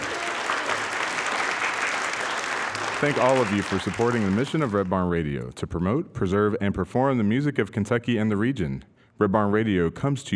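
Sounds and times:
studio audience applause: 0:00.0 - 0:05.0
speech: 0:03.0 - 0:10.3.

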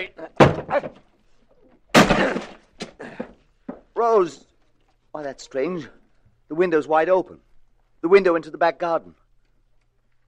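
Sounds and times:
door being broken down: 0:00.2 - 0:01.1, 0:01.9 - 0:03.8
speech: 0:04.0 - 0:04.5, 0:05.2 - 0:09.2.

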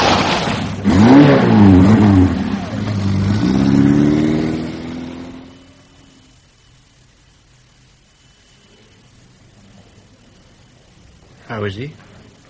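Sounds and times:
car engine accelerating hard toward pedestrian: 0:00.0 - 0:06.3
speech: 0:11.7 - 0:12.1.

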